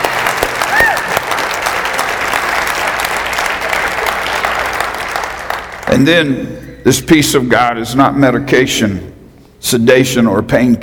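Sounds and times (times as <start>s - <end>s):
audience clapping in praise: 0.0s - 6.1s
vocal whoop: 0.6s - 1.2s
speech: 5.9s - 10.8s.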